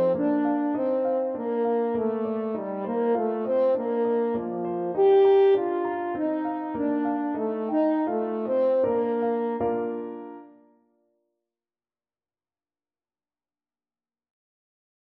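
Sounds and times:
French horn melody: 0:00.0 - 0:10.6.

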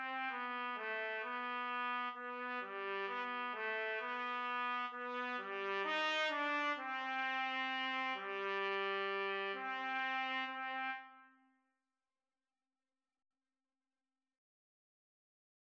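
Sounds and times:
trumpet duet: 0:00.0 - 0:11.4.

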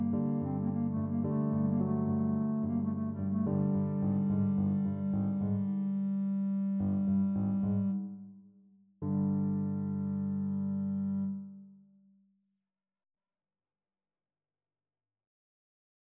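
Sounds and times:
clarinet: 0:00.0 - 0:08.3, 0:09.0 - 0:11.7.

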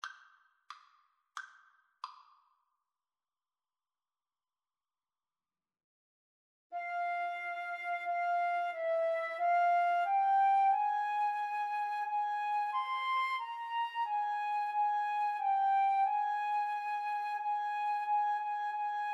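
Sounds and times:
flute duet: 0:06.8 - 0:19.1.

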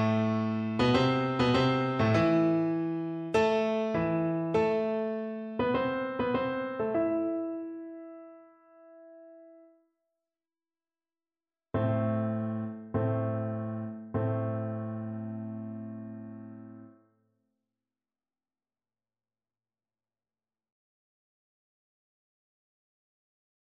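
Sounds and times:
piano piece: 0:00.0 - 0:09.8, 0:11.8 - 0:17.0.

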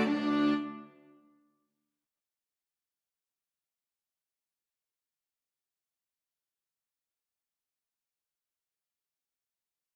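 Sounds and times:
reed pipes: 0:00.0 - 0:01.1
string quartet: 0:00.0 - 0:01.1.

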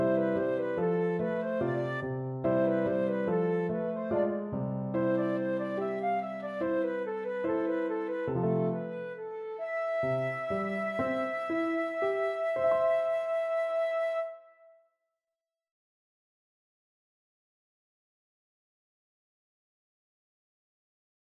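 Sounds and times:
flute duet: 0:00.0 - 0:14.8.

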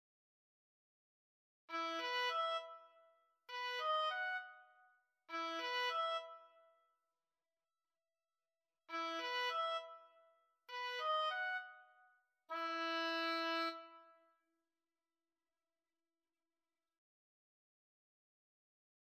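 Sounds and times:
oboe duet: 0:01.7 - 0:02.9, 0:03.5 - 0:04.5, 0:05.3 - 0:06.5, 0:08.9 - 0:10.0, 0:10.7 - 0:11.7, 0:12.5 - 0:14.1.

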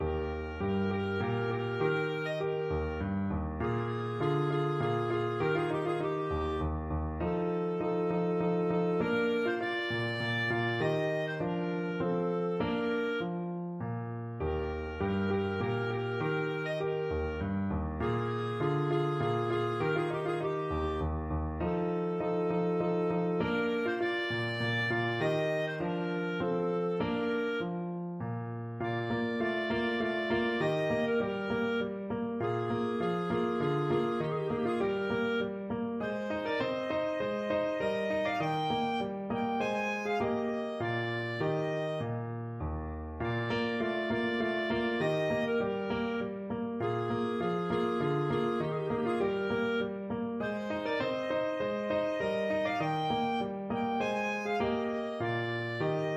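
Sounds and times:
clarinet playing an opera minuet: 0:00.0 - 0:56.1.

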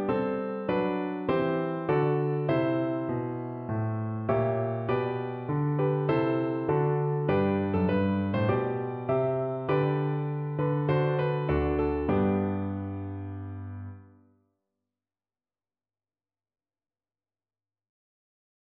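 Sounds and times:
piano: 0:00.0 - 0:14.3.

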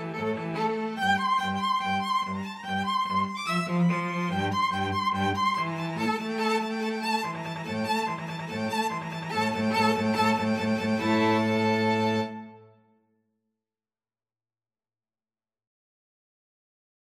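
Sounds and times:
string trio playing Romanian folk dance: 0:00.0 - 0:12.6.

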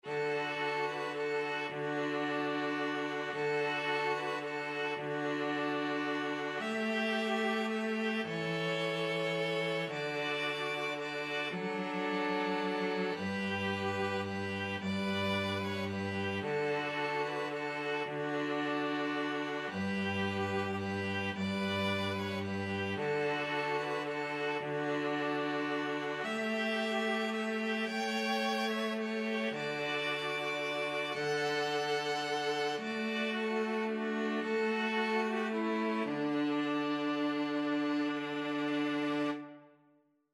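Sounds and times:
string trio playing: 0:00.0 - 0:39.7.

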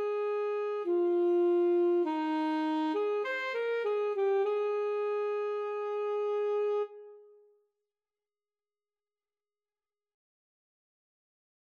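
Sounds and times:
alto saxophone duet: 0:00.0 - 0:07.3.

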